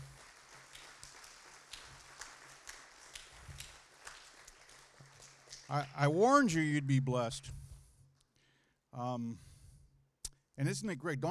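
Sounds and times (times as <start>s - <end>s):
audience applause: 0.0s - 6.4s
speech: 5.7s - 7.6s, 9.0s - 9.5s, 10.6s - 11.3s.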